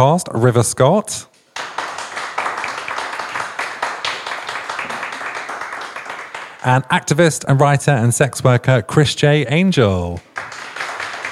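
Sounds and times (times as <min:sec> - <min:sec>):
speech: 0:00.0 - 0:01.3, 0:06.6 - 0:10.3
audience applause: 0:01.6 - 0:06.8, 0:10.3 - 0:11.3.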